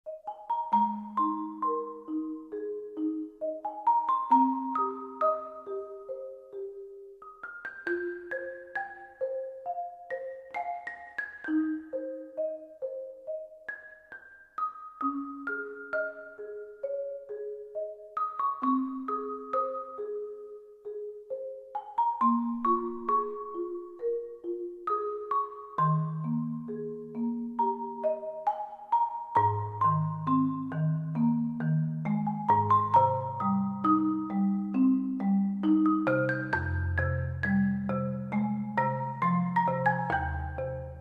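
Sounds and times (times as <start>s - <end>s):
marimba: 0.1s - 40.9s.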